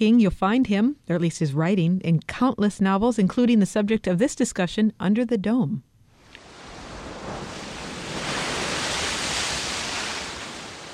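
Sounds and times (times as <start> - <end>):
speech: 0.0 - 5.9
Pacific Ocean waves rolling onto beaches of California: 6.2 - 10.9.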